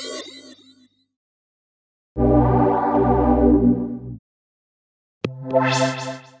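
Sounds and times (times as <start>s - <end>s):
Kaossilator synthesizer: 2.2s - 4.2s, 5.3s - 6.3s.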